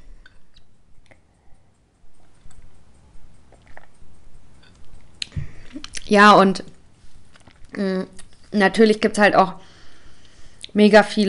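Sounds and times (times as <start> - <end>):
person sipping a drink: 3.5 - 4.0
speech: 6.1 - 6.7, 7.8 - 9.6, 10.8 - 11.2.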